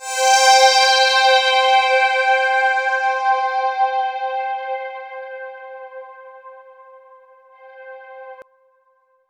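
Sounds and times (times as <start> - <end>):
Roland JV 2080 poly saw synth note C4: 0.0 - 6.6.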